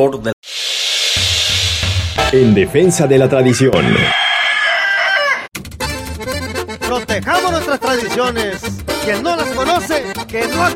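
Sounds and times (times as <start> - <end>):
speech: 0.0 - 0.4, 2.3 - 4.2, 7.2 - 10.7
rough noisy burst: 0.4 - 3.0
fighting rooster crowing: 3.8 - 5.5.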